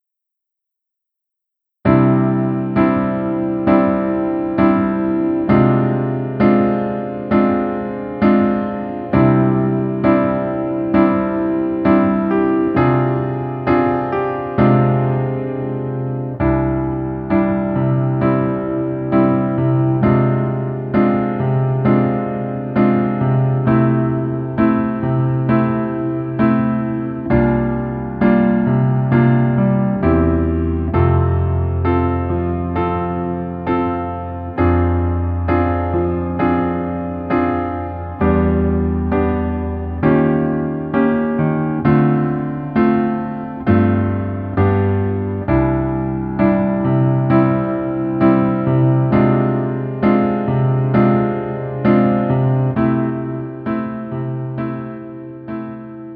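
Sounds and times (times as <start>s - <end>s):
piano music: 1.8s - 56.1s.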